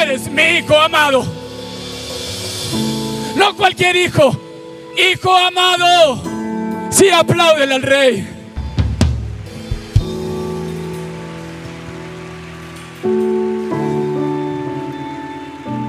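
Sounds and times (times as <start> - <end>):
sustained keyboard chords: 0.0 - 15.8
speech: 0.1 - 1.4, 2.7 - 4.4, 5.0 - 6.3, 6.9 - 8.3
audience applause: 9.7 - 14.6.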